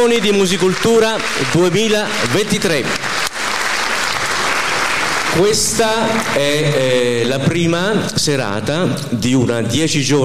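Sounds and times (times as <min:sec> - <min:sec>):
speech: 0:00.0 - 0:03.3, 0:05.3 - 0:10.2
audience applause at the Musicultura 2023 auditions in Macerata: 0:00.0 - 0:07.1.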